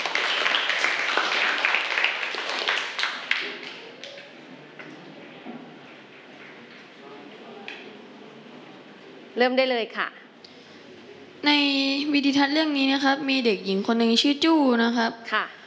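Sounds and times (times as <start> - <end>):
classroom of students clapping: 0.0 - 4.4
faint murmur of voices: 2.2 - 12.6
speech: 9.4 - 10.2, 11.4 - 15.6.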